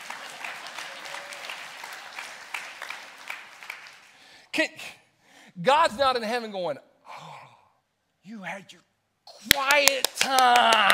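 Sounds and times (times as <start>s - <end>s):
audience clapping: 0.0s - 4.4s, 9.3s - 10.9s
speech: 4.6s - 5.0s, 5.6s - 6.9s, 8.2s - 10.9s.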